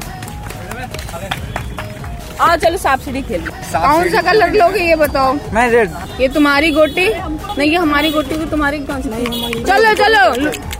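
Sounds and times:
hand claps: 0.0s - 2.4s, 8.2s - 10.7s
people's voices: 0.0s - 10.7s
speech: 2.4s - 10.7s.

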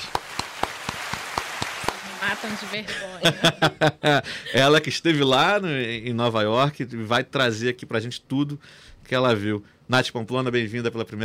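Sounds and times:
round of applause: 0.0s - 2.9s
speech: 2.2s - 11.2s
laughter: 2.8s - 4.4s.

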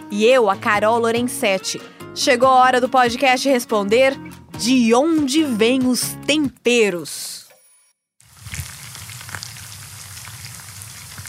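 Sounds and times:
speech: 0.1s - 7.4s
onion and garlic sizzling in a frying pan: 8.2s - 11.2s.

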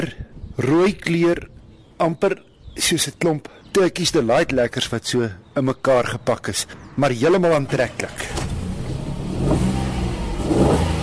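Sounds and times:
speech: 0.0s - 8.6s
small three-cylinder car engine revving: 8.2s - 11.0s.

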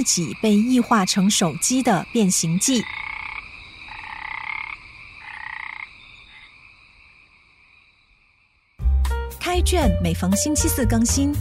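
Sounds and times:
speech: 0.0s - 3.2s, 9.6s - 11.4s
chorus of frogs croaking: 0.0s - 8.8s.

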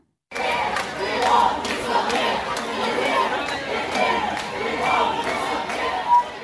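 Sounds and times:
pride parade crowd in the street: 0.3s - 6.4s.

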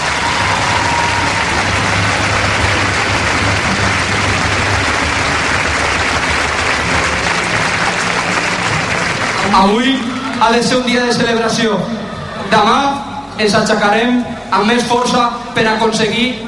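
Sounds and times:
crowd applause: 0.0s - 12.6s
speech: 9.6s - 16.4s.

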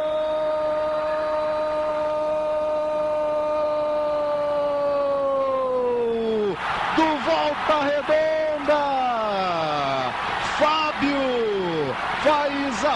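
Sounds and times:
Voltaço fans cheering at the Maracanã: 0.0s - 12.9s
speech: 7.6s - 8.8s.

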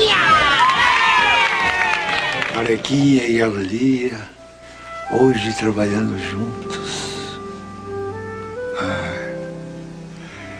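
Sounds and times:
audience cheering: 0.0s - 3.0s
audience applause: 0.0s - 3.8s
speech: 2.7s - 4.4s, 5.1s - 6.8s.

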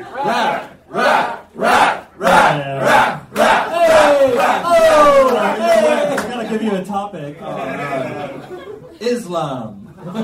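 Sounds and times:
crowd cheering in unison for socials: 0.0s - 6.3s
speech: 0.2s - 1.4s, 9.2s - 10.2s
laughter: 3.9s - 9.0s, 9.8s - 10.2s.

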